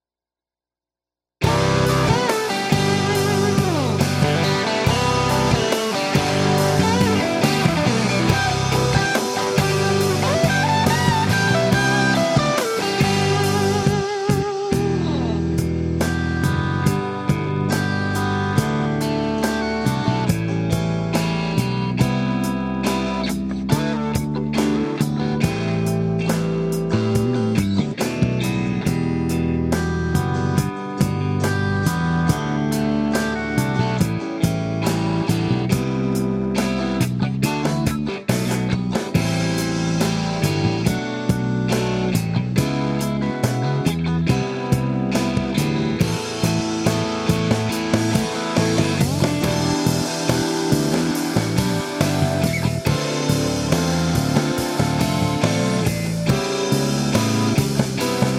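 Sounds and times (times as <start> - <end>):
rock remix: 1.4 - 58.3.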